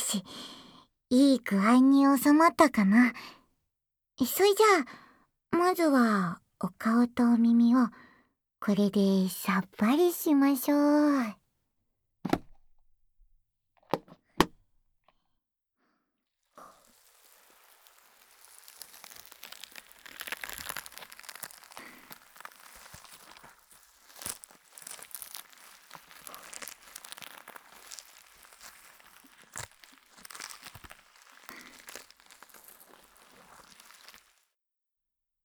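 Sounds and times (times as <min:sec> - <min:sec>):
speech: 0:00.1 - 0:03.4, 0:04.2 - 0:08.0, 0:08.6 - 0:11.4
styrofoam slime squished near the ear: 0:16.6 - 0:34.5.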